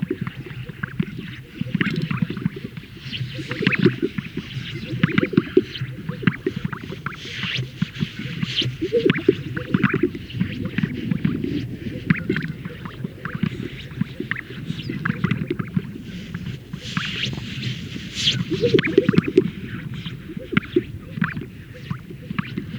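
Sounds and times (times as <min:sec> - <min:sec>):
Greater sage-grouse males displaying at a lek, inflating and releasing air sacs: 0:00.0 - 0:22.7.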